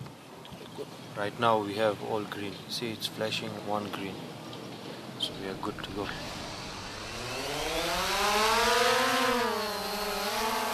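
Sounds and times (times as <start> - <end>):
speech: 1.2 - 4.3, 5.2 - 6.4
small drone with GoPro camera hovering over a field near Nairobi: 5.2 - 10.7.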